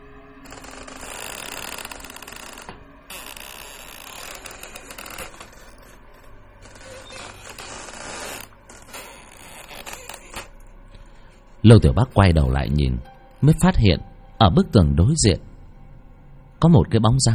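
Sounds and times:
eerie creaking from a locked cabinet drawer: 0:00.4 - 0:14.0
speech: 0:11.6 - 0:15.5, 0:16.6 - 0:17.3.

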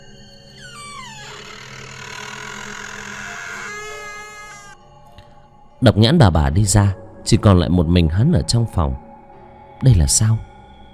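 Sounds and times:
door creaking open: 0:00.0 - 0:04.8
speech: 0:05.8 - 0:09.0, 0:09.8 - 0:10.5.

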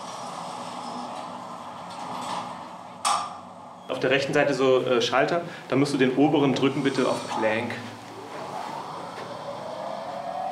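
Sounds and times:
elevator doors sliding open: 0:00.0 - 0:04.5, 0:05.8 - 0:10.4
speech: 0:04.0 - 0:08.0.

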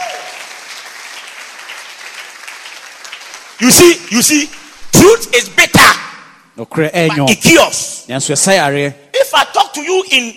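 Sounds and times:
audience clapping: 0:00.0 - 0:04.9
speech: 0:03.6 - 0:06.0, 0:06.6 - 0:10.3.

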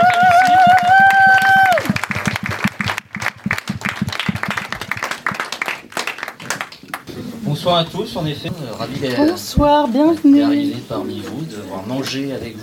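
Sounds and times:
audience applause for a poet at a poetry reading: 0:00.0 - 0:07.1
speech: 0:07.7 - 0:12.6.

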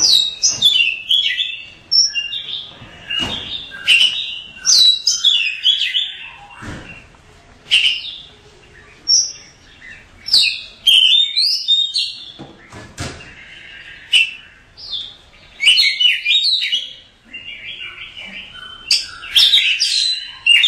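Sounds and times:
Oriental magpie-robin song of whistles and chirps: 0:00.0 - 0:07.1, 0:07.7 - 0:20.6.

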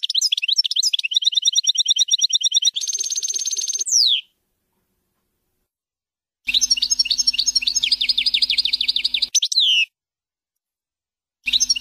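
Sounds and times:
European goldfinch song: 0:00.0 - 0:04.3, 0:06.5 - 0:09.9, 0:11.4 - 0:11.7.

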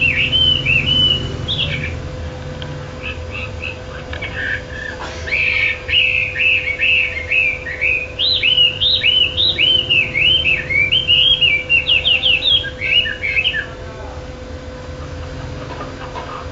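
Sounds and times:
bird song of looping whistled phrases and fast chirps: 0:00.0 - 0:02.0, 0:03.0 - 0:13.8.

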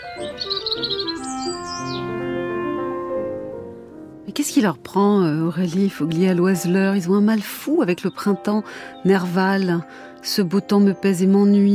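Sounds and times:
birds chirping in the sunshine by a hedge: 0:00.0 - 0:02.4, 0:05.6 - 0:11.7
steady sustained musical drone: 0:00.0 - 0:07.2
speech: 0:04.5 - 0:11.7.

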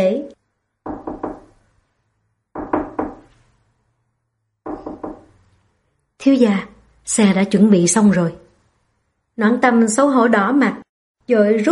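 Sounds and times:
firm knocking on a door: 0:00.8 - 0:01.6, 0:02.5 - 0:03.3, 0:04.6 - 0:05.4
speech: 0:06.2 - 0:08.4, 0:09.4 - 0:11.7.

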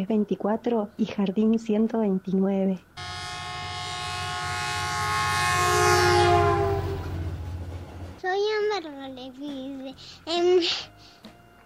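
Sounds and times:
speech: 0:00.0 - 0:03.2
train passing: 0:03.0 - 0:08.4.

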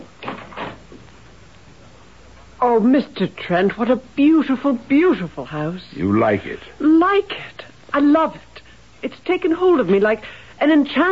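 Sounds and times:
door of a house being opened: 0:00.0 - 0:00.9
speech: 0:02.7 - 0:11.1.

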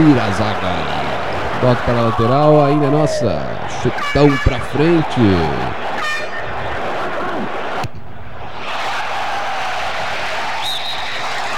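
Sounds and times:
speech: 0:00.0 - 0:01.0, 0:01.6 - 0:05.9
laughter: 0:00.0 - 0:07.8
shrill whistles from stadium crowd: 0:00.0 - 0:11.5
stadium crowd roaring: 0:00.0 - 0:11.5.

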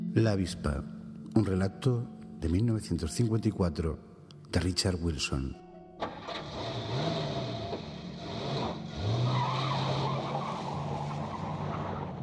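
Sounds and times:
speech: 0:00.2 - 0:05.6
car engine humming entering a curve at 45 miles per hour: 0:06.0 - 0:12.2
car tires squealing in a curve: 0:06.0 - 0:12.2
road noise: 0:06.0 - 0:12.2.

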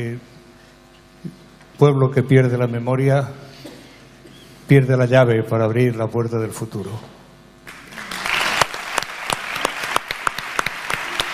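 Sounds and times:
speech: 0:00.0 - 0:00.4, 0:01.2 - 0:03.5, 0:04.7 - 0:07.2
crowd applauding a musician: 0:07.7 - 0:11.3.

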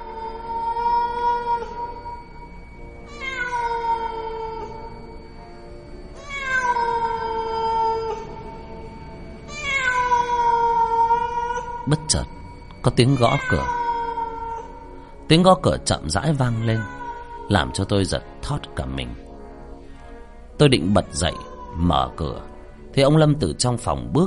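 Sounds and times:
cat yowling mournfully at night outside the door: 0:00.0 - 0:02.3, 0:03.0 - 0:05.2, 0:06.2 - 0:08.6, 0:09.5 - 0:15.0, 0:16.2 - 0:18.0, 0:20.8 - 0:22.4
speech: 0:12.1 - 0:13.8, 0:15.3 - 0:19.2, 0:20.6 - 0:24.2.

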